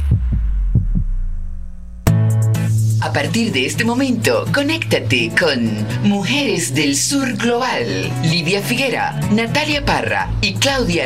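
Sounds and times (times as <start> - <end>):
heartbeat sound effect: 0.0 - 1.6
speech: 3.1 - 11.0.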